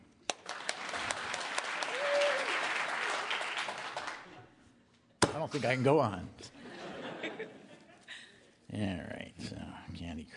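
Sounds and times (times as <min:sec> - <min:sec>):
audience clapping: 0:00.2 - 0:04.4
speech: 0:05.4 - 0:06.6, 0:08.7 - 0:10.3
laughter: 0:06.6 - 0:08.4.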